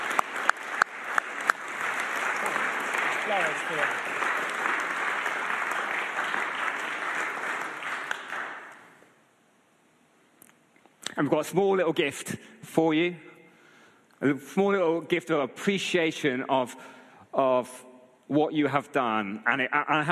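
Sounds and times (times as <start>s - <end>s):
audience round of applause: 0.0s - 9.0s
speech: 3.3s - 4.2s, 11.2s - 13.3s, 14.2s - 20.1s.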